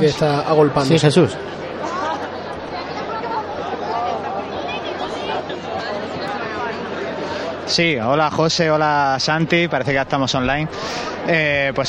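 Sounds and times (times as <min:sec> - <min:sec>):
speech: 0:00.0 - 0:02.0, 0:07.7 - 0:11.8
crowd gathered outside a church murmuring: 0:00.0 - 0:11.8.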